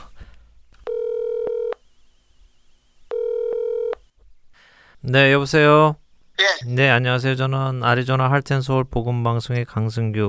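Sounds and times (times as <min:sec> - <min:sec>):
telephone line beeps: 0:00.8 - 0:01.8, 0:03.1 - 0:04.0
speech: 0:05.0 - 0:10.2.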